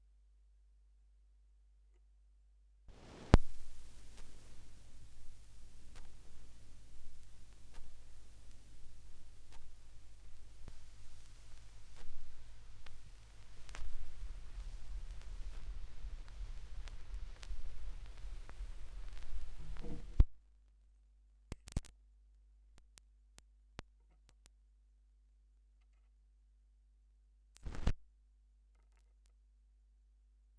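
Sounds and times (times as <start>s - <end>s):
vinyl record noise: 2.9s - 20.4s, 21.5s - 21.9s, 27.6s - 28.0s.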